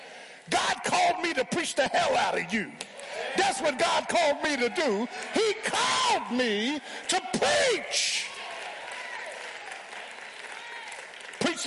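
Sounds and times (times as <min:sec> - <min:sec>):
speech: 0:00.5 - 0:08.3
audience applauding: 0:03.0 - 0:11.6.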